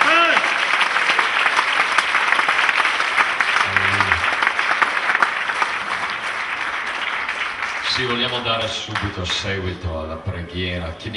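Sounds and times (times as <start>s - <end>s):
audience applauding: 0.0s - 9.6s
brief voice: 3.7s - 4.3s
short low tone: 3.7s - 4.3s
speech: 8.4s - 11.1s.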